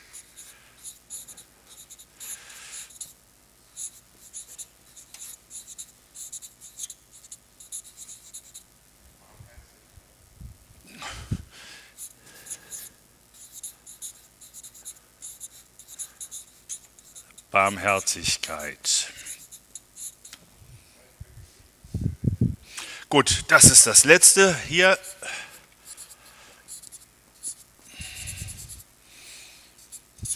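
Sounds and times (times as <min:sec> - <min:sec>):
handwriting with a pen on paper: 0:00.2 - 0:03.2, 0:03.8 - 0:08.7, 0:12.0 - 0:18.4, 0:19.1 - 0:20.3, 0:25.9 - 0:28.8, 0:29.8 - 0:30.3
speech: 0:17.6 - 0:19.2, 0:23.1 - 0:25.0.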